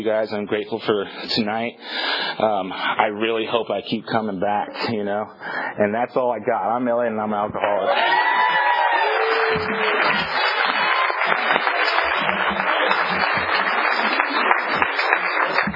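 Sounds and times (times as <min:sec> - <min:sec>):
speech: 0:00.0 - 0:08.2, 0:09.5 - 0:10.4
audience applause: 0:07.9 - 0:15.7.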